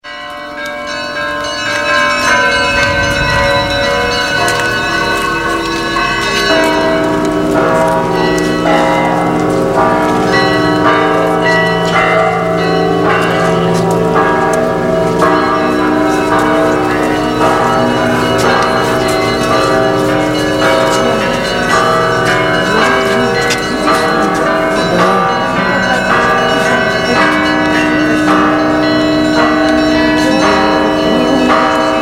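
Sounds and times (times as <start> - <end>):
bells ringing: 0.0 - 31.9.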